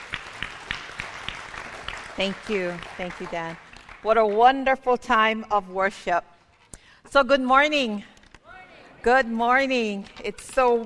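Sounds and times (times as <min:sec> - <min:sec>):
audience applause: 0:00.0 - 0:04.0
speech: 0:02.2 - 0:06.3, 0:07.1 - 0:08.1, 0:09.0 - 0:10.8.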